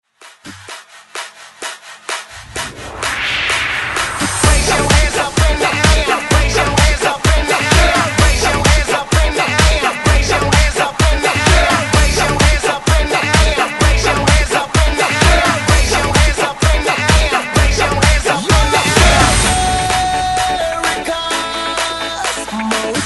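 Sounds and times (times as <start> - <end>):
hype remix beat: 0.2 - 23.0.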